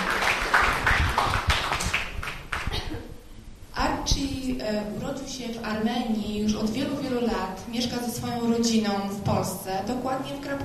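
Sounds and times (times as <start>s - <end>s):
audience applause: 0.0s - 2.8s
speech: 4.7s - 10.6s.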